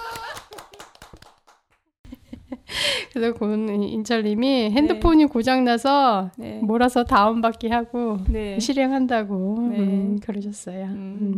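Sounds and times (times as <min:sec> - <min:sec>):
hand clapping: 0:00.0 - 0:01.9
speech: 0:03.1 - 0:11.3.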